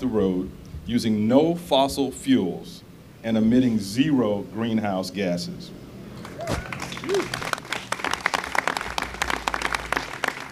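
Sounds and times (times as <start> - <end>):
speech: 0.0 - 7.5
whoops: 6.2 - 7.6
audience applause: 6.2 - 10.5.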